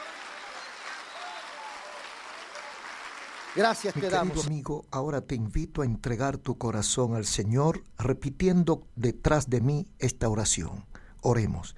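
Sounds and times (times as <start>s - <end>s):
audience applause: 0.0s - 4.5s
speech: 3.6s - 11.7s.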